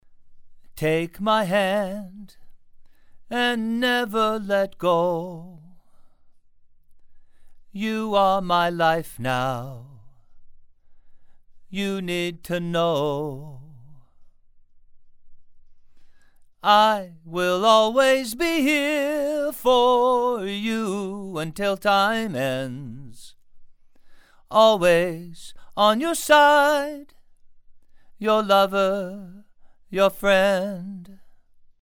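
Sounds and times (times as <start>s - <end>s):
male vocals: 0.6s - 2.6s, 3.2s - 6.1s, 7.6s - 10.4s, 11.6s - 14.2s, 16.6s - 23.4s, 24.4s - 27.2s, 28.1s - 31.4s.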